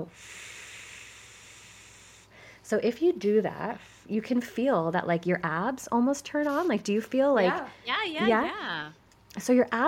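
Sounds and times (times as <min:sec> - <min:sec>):
speech: 0:00.0 - 0:00.5, 0:02.7 - 0:09.8
exhale blown into a closed fist: 0:00.0 - 0:02.6.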